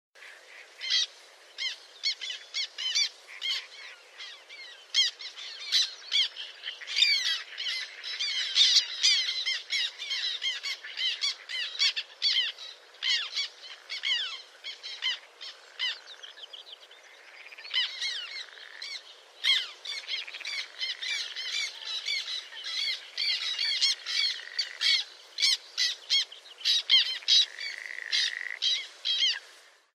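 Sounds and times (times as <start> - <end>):
birds squawking: 0.2 - 16.4, 17.4 - 29.4.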